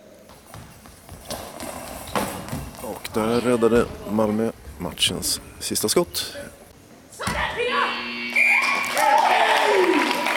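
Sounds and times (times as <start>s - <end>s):
speech: 2.9s - 6.6s
final buzzer ending the match: 7.6s - 8.8s
crowd cheering: 8.2s - 10.3s.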